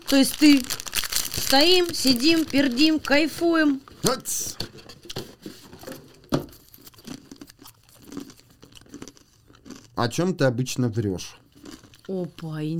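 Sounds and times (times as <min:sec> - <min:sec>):
cookie being broken open: 0:00.0 - 0:03.1, 0:06.8 - 0:10.0, 0:11.6 - 0:12.7
speech: 0:00.1 - 0:00.8, 0:01.4 - 0:04.9, 0:10.0 - 0:11.4, 0:12.1 - 0:12.7.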